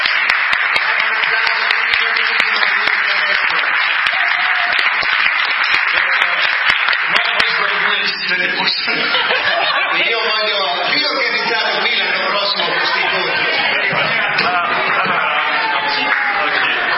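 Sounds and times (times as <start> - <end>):
crowd applauding: 0.0 - 16.9
laughter: 7.1 - 16.9.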